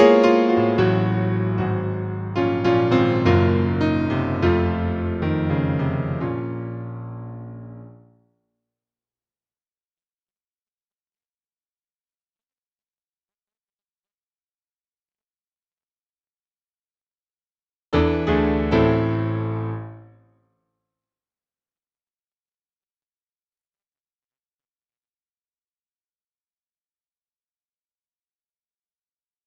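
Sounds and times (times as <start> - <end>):
piano: 0.0 - 8.3, 18.0 - 20.3.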